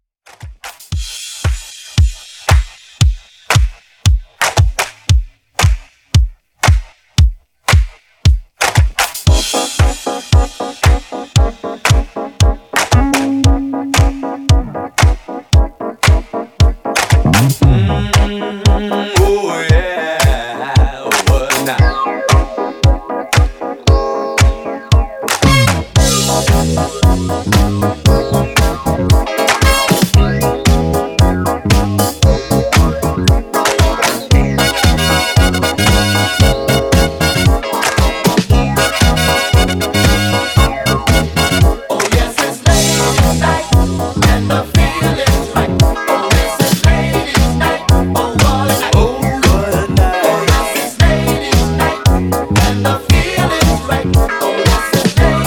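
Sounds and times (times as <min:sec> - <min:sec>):
drum: 0:00.3 - 0:55.4.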